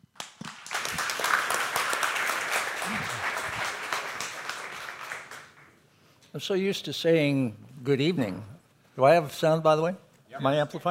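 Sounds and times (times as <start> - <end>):
large audience applause: 0.2 - 5.7
speech: 6.3 - 10.8.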